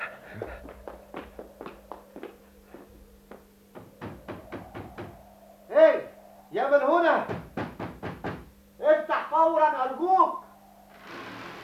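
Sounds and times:
faint steady hum: 0.0 - 11.6
knocking on the door of a private house: 3.7 - 5.2, 7.3 - 8.5.

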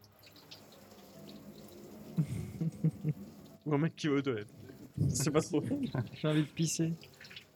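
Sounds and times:
shower water running: 0.0 - 7.5
speech: 2.2 - 7.2.

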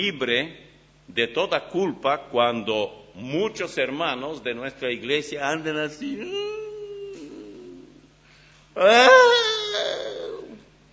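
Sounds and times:
speech: 0.0 - 6.6, 8.8 - 10.0
male preacher imitating wailing and crying: 6.0 - 8.1, 8.8 - 10.6.

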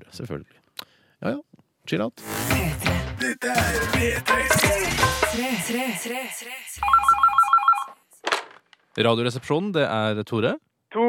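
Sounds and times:
speech: 0.1 - 7.3, 9.0 - 11.0
telephone ringing with electronic trill: 6.8 - 8.0.

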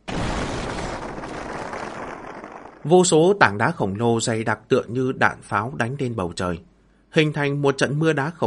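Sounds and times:
massive explosion beneath a mountain at night: 0.0 - 3.1
speech: 2.8 - 8.4.

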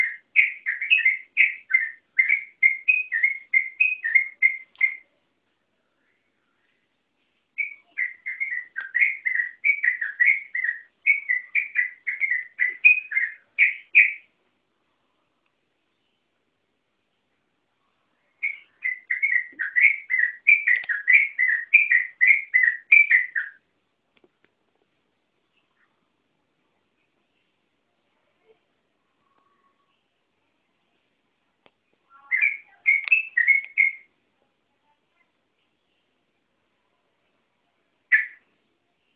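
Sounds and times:
Yellow-vented Bulbul song: 0.0 - 5.1, 7.6 - 14.3, 18.4 - 23.6, 32.1 - 34.1, 38.1 - 38.4.

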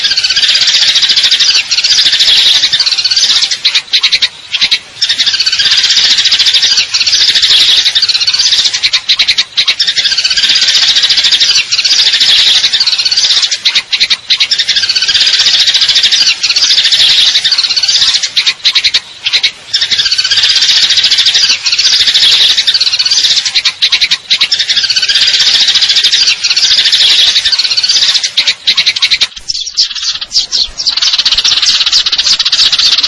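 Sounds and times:
Eurasian tree sparrow chirping and trilling: 0.0 - 33.0.

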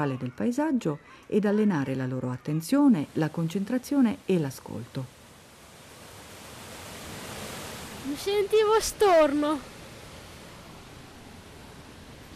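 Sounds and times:
speech: 0.0 - 5.2, 8.0 - 9.7
waterfall rushing water: 2.9 - 12.3.

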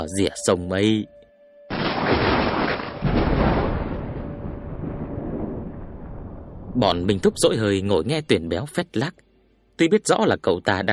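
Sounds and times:
speech: 0.0 - 1.2, 6.8 - 9.2, 9.8 - 10.9
thunder rumbling: 1.7 - 8.0.

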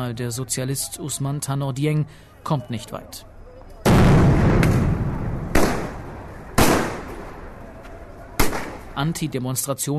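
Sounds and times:
speech: 0.0 - 3.3, 9.0 - 9.9
rubber bullets fired: 3.9 - 7.3, 8.4 - 8.9
tear gas grenades fired: 3.9 - 7.3.

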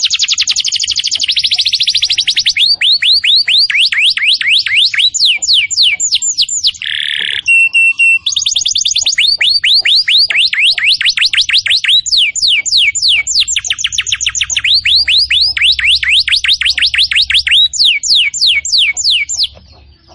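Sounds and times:
canary singing: 0.0 - 20.1.

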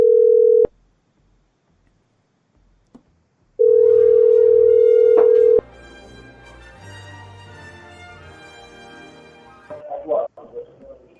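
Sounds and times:
telephone call tones while placing a call: 0.0 - 0.7, 3.6 - 5.6.

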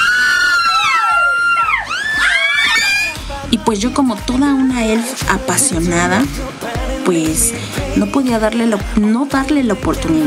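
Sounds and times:
excited high-pitched screaming: 0.0 - 3.2
speech: 3.7 - 10.2.

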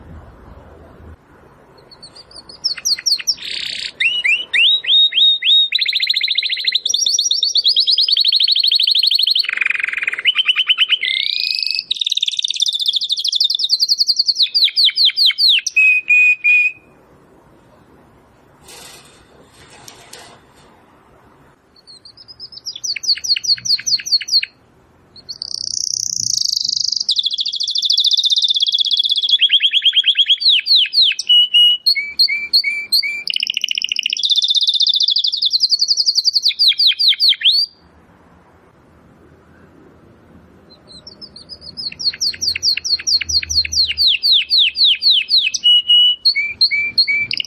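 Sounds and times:
Domestic canary trilling: 1.8 - 17.0, 21.8 - 37.8, 40.7 - 47.4
faint rustling: 17.6 - 21.6.

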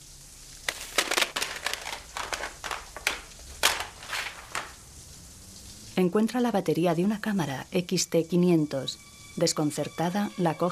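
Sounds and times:
papers rustling and crinkling as master tapes are stuffed into a bag: 0.6 - 4.8
speech: 6.0 - 10.7.

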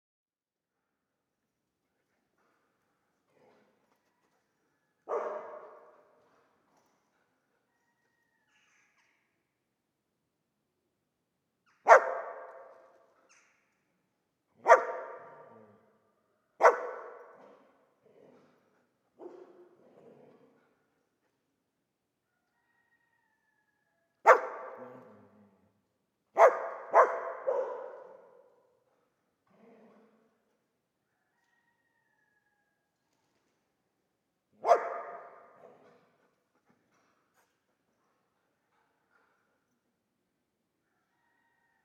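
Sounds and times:
dog barking: 5.1 - 6.0, 11.8 - 12.8, 14.6 - 15.7, 16.6 - 17.5, 19.2 - 19.7, 24.2 - 25.1, 26.3 - 28.6, 34.6 - 35.8.

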